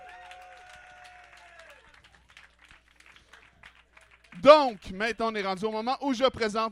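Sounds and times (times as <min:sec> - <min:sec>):
high sustained cheer or whistle: 0:00.0 - 0:02.1
audience applause: 0:00.0 - 0:05.2
speech: 0:04.4 - 0:06.6.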